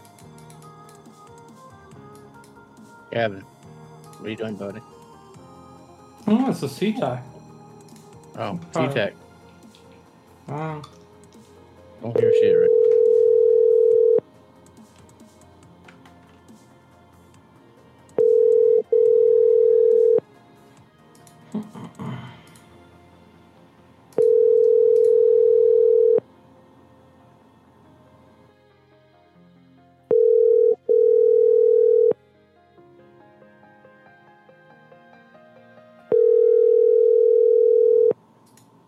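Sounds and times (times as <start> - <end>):
speech: 3.1 - 3.5, 4.2 - 5.0, 6.3 - 7.3, 8.4 - 9.2, 10.5 - 11.0, 12.0 - 12.7
phone call ringing with no answer: 12.1 - 14.2, 18.2 - 20.2, 24.2 - 26.2, 30.1 - 32.2, 36.1 - 38.2.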